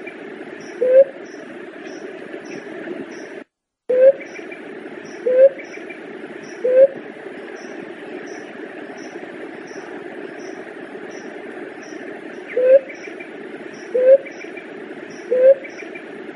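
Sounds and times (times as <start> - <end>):
Leptotila dove cooing: 0.7 - 1.2, 3.9 - 4.4, 5.1 - 5.8, 6.5 - 7.0, 12.4 - 13.0, 13.8 - 14.5, 15.1 - 16.0.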